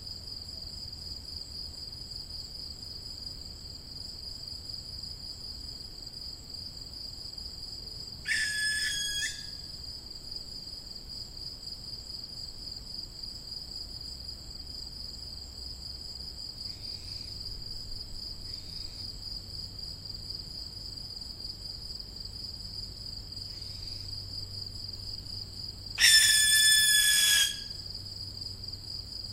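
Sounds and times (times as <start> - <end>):
young barn owl hissing screech: 8.3 - 9.6, 26.0 - 27.7.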